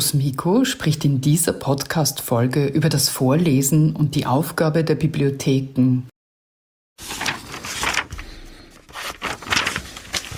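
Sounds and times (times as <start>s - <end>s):
speech: 0.1s - 6.1s
book pages rustling: 7.0s - 10.3s.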